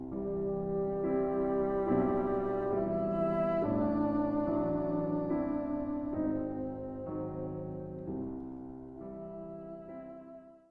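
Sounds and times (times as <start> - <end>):
trio playing andante: 0.1 - 8.2.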